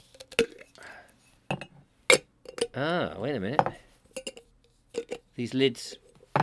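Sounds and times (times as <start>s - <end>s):
speech: 2.8s - 3.8s, 5.4s - 6.0s
pot lids knocked together: 4.1s - 5.2s.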